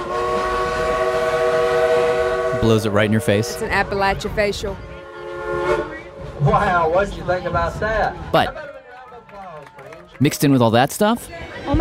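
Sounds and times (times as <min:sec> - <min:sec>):
coal-burning steam locomotive whistle: 0:00.0 - 0:03.8, 0:04.8 - 0:06.4
coal-burning steam locomotive rumbling and hissing: 0:00.0 - 0:08.5
speech: 0:02.6 - 0:04.9, 0:06.4 - 0:08.6, 0:10.2 - 0:11.7.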